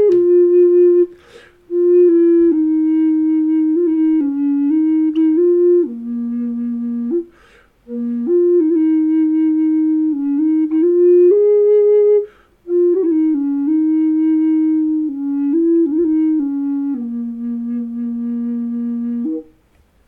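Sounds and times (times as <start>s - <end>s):
mahogany flutes playing B3 at A432: 0.0s - 19.6s.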